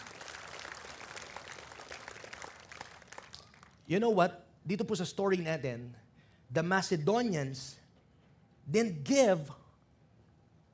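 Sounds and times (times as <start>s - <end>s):
congregation applauding in a church: 0.0s - 3.8s
speech: 3.9s - 7.8s, 8.7s - 9.6s.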